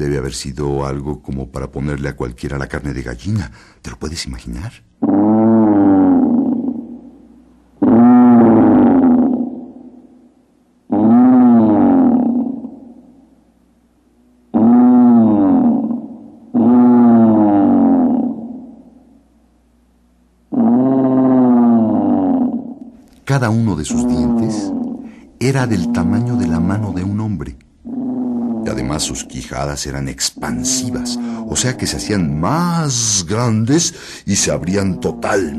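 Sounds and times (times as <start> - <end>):
speech: 0.0 - 5.2, 23.4 - 24.8, 25.4 - 27.7, 28.6 - 35.5
tyrannosaurus roar: 5.0 - 7.2, 7.8 - 9.8, 10.9 - 13.1, 14.5 - 18.9, 20.5 - 35.5.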